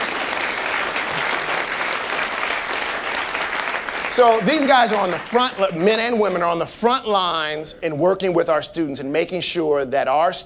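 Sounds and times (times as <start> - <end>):
audience applause for the Urban Prep Fellows: 0.0 - 6.4
speech: 4.2 - 10.4.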